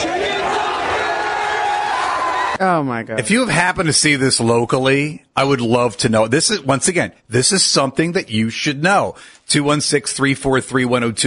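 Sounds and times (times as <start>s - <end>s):
movie theater crowd yelling and cheering: 0.0s - 2.6s
speech: 2.6s - 11.2s.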